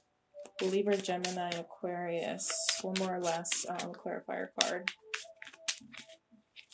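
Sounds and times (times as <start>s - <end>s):
speech: 0.6s - 5.0s
tarot cards snapping and flicking while shuffled and drawn: 4.8s - 6.7s.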